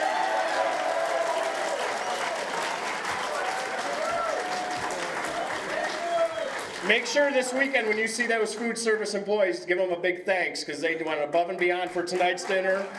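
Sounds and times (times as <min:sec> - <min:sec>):
faint voices and cheers: 0:00.0 - 0:08.7
audience applause: 0:00.0 - 0:08.8, 0:11.9 - 0:12.9
speech: 0:06.8 - 0:12.9.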